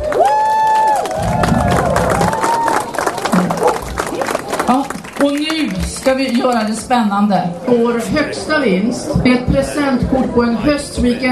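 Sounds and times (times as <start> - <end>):
audience cheering: 0.0 - 5.8
audience applause: 0.0 - 6.9
speech: 6.0 - 11.3.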